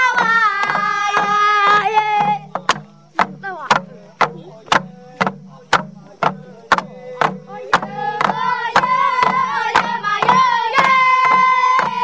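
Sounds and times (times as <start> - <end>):
jungle dance music in Malaysia: 0.0 - 12.0.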